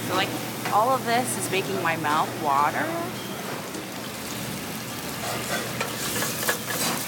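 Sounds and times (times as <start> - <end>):
speech: 0.1 - 3.3
butter sauce sizzling in a pan: 4.3 - 7.0
stirring scrapes: 5.2 - 7.0.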